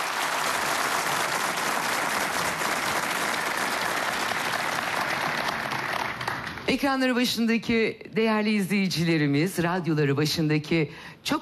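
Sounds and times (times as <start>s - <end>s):
audience applause: 0.0s - 6.7s
speech: 6.7s - 11.4s.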